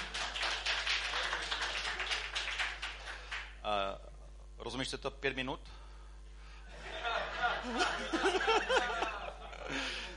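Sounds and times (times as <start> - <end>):
audience clapping: 0.0 - 3.6
speech: 4.6 - 5.8, 7.6 - 10.1
laughter: 6.7 - 10.1.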